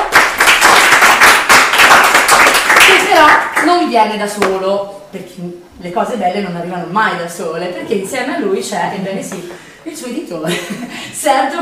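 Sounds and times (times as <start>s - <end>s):
audience applause: 0.0s - 3.6s
speech: 3.2s - 11.6s
laughter: 10.4s - 11.2s.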